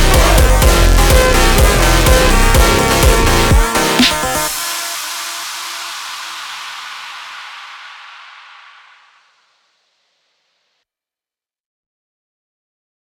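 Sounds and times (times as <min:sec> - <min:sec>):
slowed montagem music: 0:00.0 - 0:08.9.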